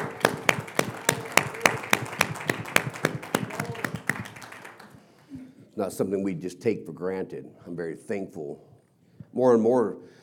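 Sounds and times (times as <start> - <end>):
audience clapping: 0.0 - 5.4
soft crowd noise: 0.0 - 5.4
speech: 5.8 - 8.7, 9.3 - 10.2.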